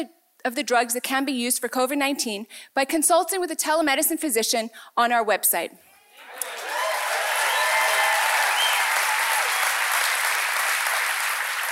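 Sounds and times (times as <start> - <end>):
speech: 0.0 - 6.5
audience applause: 6.2 - 11.7.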